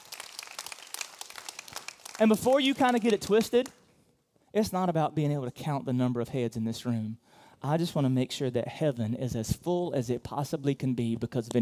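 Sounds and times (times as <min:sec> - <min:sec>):
audience clapping: 0:00.0 - 0:03.8
speech: 0:02.2 - 0:03.8, 0:04.5 - 0:11.5.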